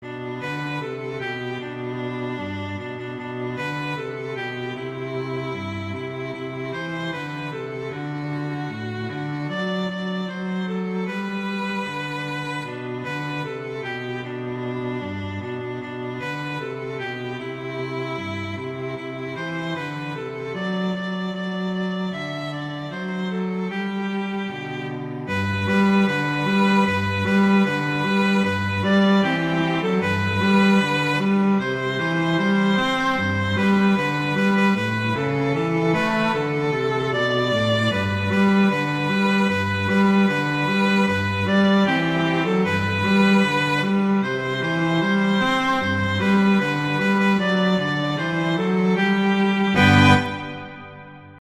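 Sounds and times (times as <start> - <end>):
Christmas song: 0.0 - 51.3.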